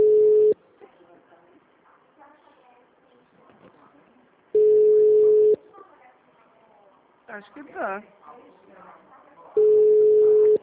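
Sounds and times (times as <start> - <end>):
telephone busy tone after dropped call: 0.0 - 0.6, 4.6 - 5.6, 9.6 - 10.6
speech: 7.4 - 9.1.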